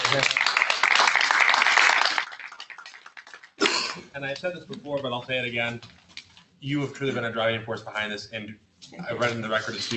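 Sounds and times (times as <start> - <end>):
audience clapping: 0.0 - 3.7
speech: 0.1 - 0.4, 4.2 - 6.0, 6.6 - 9.9.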